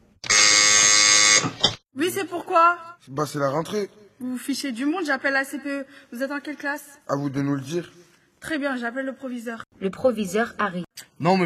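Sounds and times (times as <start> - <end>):
doorbell buzzer at school gate: 0.2 - 1.6
speech: 1.4 - 11.4.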